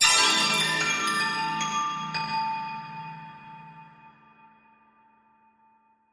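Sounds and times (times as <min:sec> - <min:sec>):
Chinese chime bells: 0:00.0 - 0:03.9.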